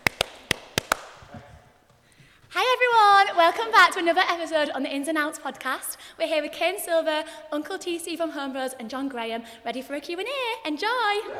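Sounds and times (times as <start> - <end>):
hand claps: 0.0 - 1.5
speech: 3.4 - 11.3.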